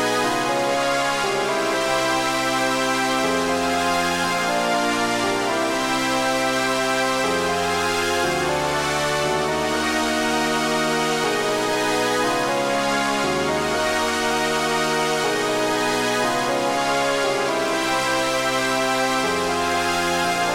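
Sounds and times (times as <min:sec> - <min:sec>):
Solina string synthesizer: 0:00.0 - 0:20.5.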